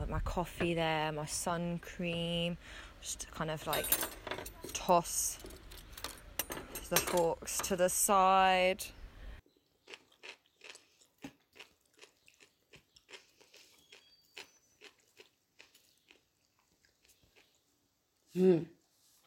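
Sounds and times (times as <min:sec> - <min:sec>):
speech: 0:00.2 - 0:05.5, 0:06.5 - 0:09.0, 0:18.4 - 0:18.8
crunchy chewing of kimchi: 0:09.4 - 0:18.3.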